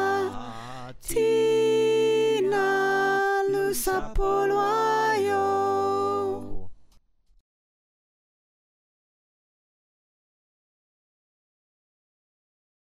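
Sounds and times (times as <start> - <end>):
choir with soprano: 0.0 - 6.7.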